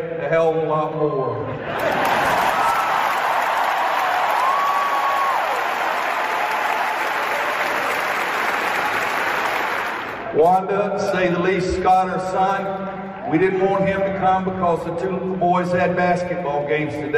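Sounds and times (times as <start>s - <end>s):
speech: 0.0s - 2.2s, 10.4s - 17.1s
large crowd cheering and applauding: 1.7s - 10.4s.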